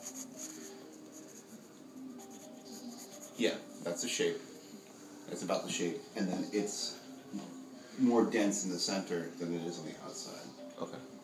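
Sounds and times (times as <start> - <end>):
pencil drawing on paper: 0.0 - 3.5
speech: 3.4 - 4.5, 5.3 - 11.1.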